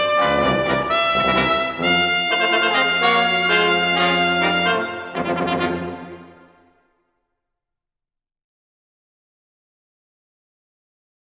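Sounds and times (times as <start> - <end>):
brass ensemble playing: 0.0 - 6.8.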